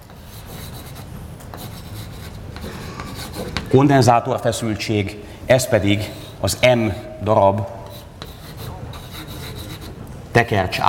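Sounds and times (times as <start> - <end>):
writing scratching on a board: 0.0 - 3.8, 6.0 - 7.2, 7.8 - 10.0
speech: 3.7 - 7.8, 10.4 - 10.8.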